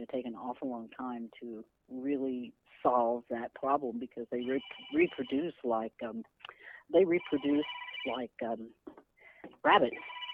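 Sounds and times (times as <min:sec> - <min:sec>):
speech: 0:00.0 - 0:10.2
mobile phone ringing during an interview: 0:04.4 - 0:05.4, 0:07.2 - 0:08.2, 0:09.7 - 0:10.3.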